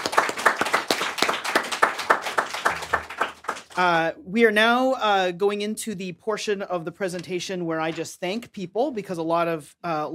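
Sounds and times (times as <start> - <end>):
audience applause: 0.0 - 3.8
speech: 3.8 - 10.1.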